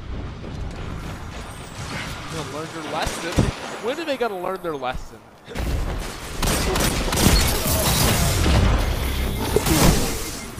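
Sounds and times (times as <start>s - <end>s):
fusion rifle gunfire in a video game: 0.0s - 4.1s, 5.5s - 10.5s
speech: 2.4s - 5.7s.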